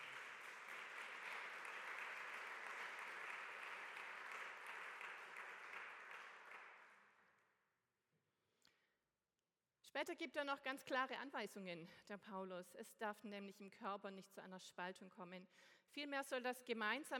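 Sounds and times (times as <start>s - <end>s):
audience clapping: 0.0s - 7.2s
speech: 10.0s - 17.1s.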